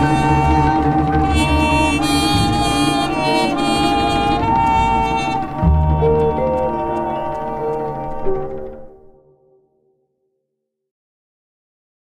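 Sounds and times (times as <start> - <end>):
melody: 0.0 - 9.6.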